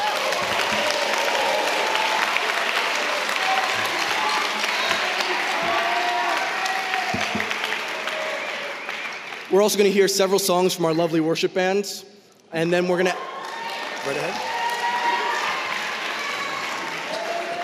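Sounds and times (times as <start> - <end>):
audience applause: 0.0 - 9.6, 13.2 - 17.6
speech: 9.5 - 13.3, 14.0 - 14.5.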